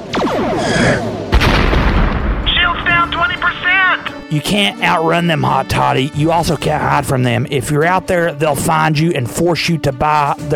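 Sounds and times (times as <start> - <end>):
spaceship weapons booming blasts in a sci-fi comedy space battle: 0.1 - 3.4
speech: 4.3 - 10.5.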